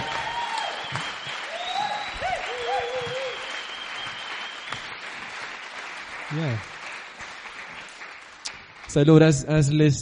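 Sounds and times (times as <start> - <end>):
audience cheering: 0.0 - 6.9
audience applauding: 0.0 - 9.3
speech: 6.3 - 6.8, 8.9 - 10.0.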